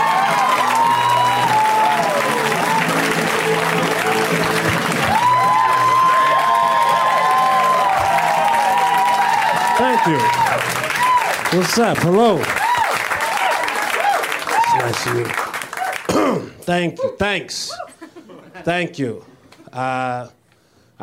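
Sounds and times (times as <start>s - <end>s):
crowd applauding: 0.0s - 16.2s
speech: 10.0s - 10.4s, 11.5s - 12.6s, 15.0s - 15.4s, 16.2s - 17.7s, 18.6s - 20.4s.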